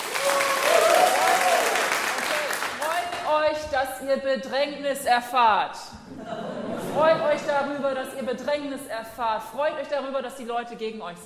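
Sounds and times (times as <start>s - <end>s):
audience clapping: 0.0s - 3.4s
speech: 3.8s - 6.4s, 7.0s - 11.2s
laughter: 6.1s - 8.5s.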